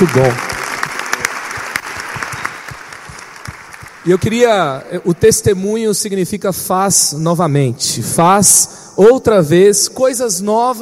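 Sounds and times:
speech: 0:00.0 - 0:00.5, 0:04.0 - 0:10.8
crowd clapping: 0:00.0 - 0:04.8.

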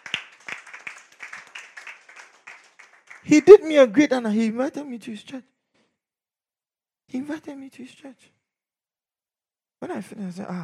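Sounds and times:
audience clapping: 0:00.0 - 0:03.9
speech: 0:03.2 - 0:05.5, 0:07.1 - 0:08.4, 0:09.8 - 0:10.6.

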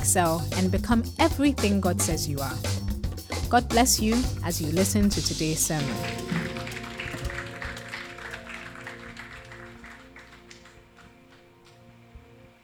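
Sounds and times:
speech: 0:00.0 - 0:02.8, 0:03.5 - 0:06.4
audience applause: 0:05.8 - 0:11.5.

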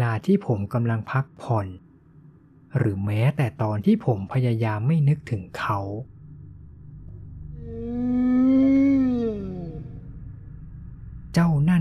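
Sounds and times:
speech: 0:00.2 - 0:01.8, 0:02.7 - 0:06.1
eerie howling sound: 0:06.4 - 0:11.8.

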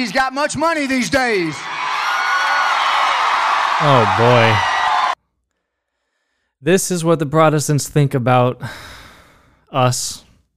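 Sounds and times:
speech: 0:00.0 - 0:01.9, 0:03.8 - 0:04.8, 0:06.6 - 0:08.9, 0:09.7 - 0:10.2
audience cheering: 0:00.0 - 0:05.2
audience applause: 0:01.5 - 0:05.2.

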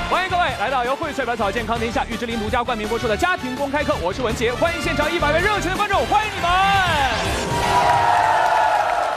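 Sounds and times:
speech: 0:00.2 - 0:08.2
studio audience applause: 0:07.3 - 0:09.1.

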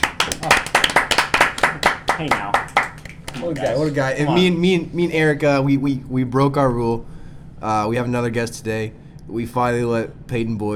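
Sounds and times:
round of applause: 0:00.0 - 0:04.4
speech: 0:02.2 - 0:02.6, 0:03.4 - 0:10.7.

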